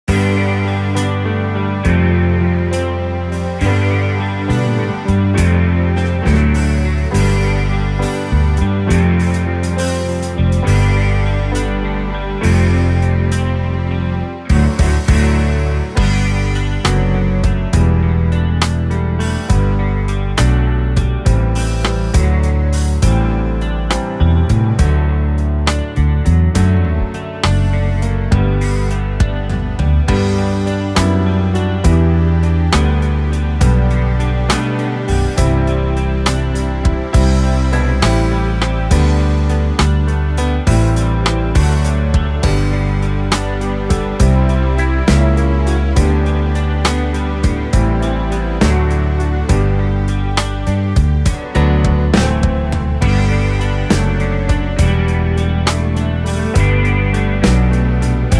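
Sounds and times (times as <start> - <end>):
instrumental music: 0.0 - 58.3.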